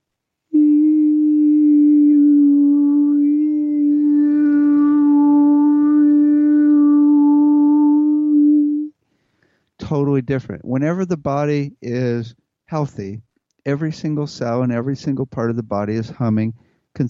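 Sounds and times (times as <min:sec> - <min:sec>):
person singing steady vowel: 0:00.5 - 0:09.0
speech: 0:09.9 - 0:17.0.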